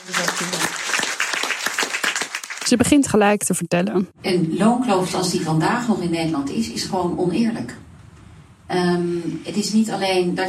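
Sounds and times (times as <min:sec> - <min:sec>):
audience applause: 0:00.0 - 0:02.8
speech: 0:00.1 - 0:00.6, 0:02.7 - 0:07.8, 0:08.7 - 0:10.4.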